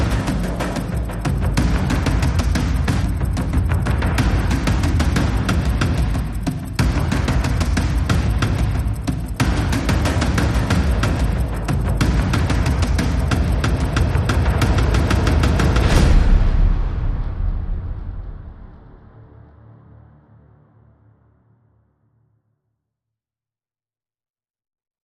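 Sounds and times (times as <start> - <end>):
drums: 0.0 - 19.2
synths: 0.0 - 21.4.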